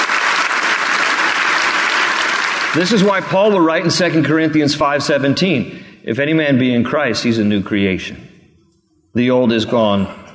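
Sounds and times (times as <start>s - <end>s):
audience clapping: 0.0s - 3.9s
speech: 2.8s - 8.3s, 9.2s - 10.2s.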